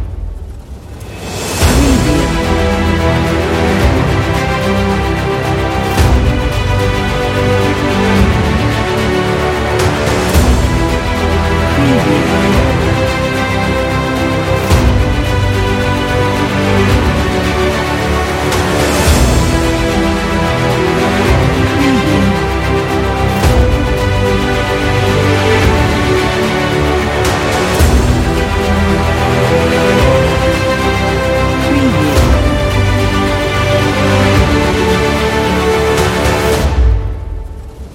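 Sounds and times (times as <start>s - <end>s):
epic dramatic music: 0.0s - 37.9s.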